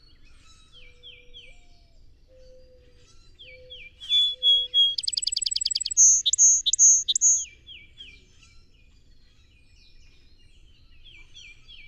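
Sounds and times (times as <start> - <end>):
Song Sparrow singing whistled notes: 3.4 - 7.5.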